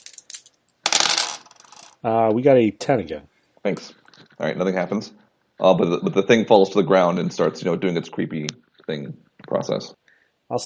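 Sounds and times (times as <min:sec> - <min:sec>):
dice tumbling and rattling across a hard surface: 0:00.0 - 0:02.0
speech: 0:02.0 - 0:10.6.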